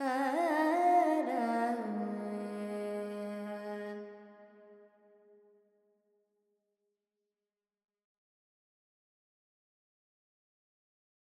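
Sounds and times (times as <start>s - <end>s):
woman singing Carnatic pentatonic alap in G: 0.0s - 4.2s.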